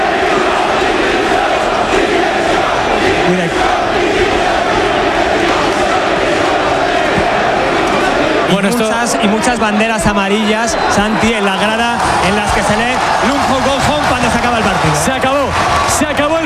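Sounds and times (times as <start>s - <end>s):
stadium crowd chanting in protest: 0.0s - 16.4s
speech: 8.5s - 16.4s.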